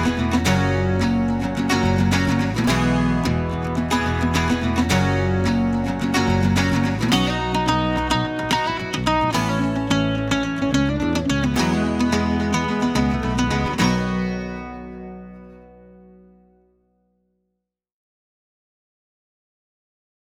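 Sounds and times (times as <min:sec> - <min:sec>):
cajon playing: 0:00.0 - 0:14.2.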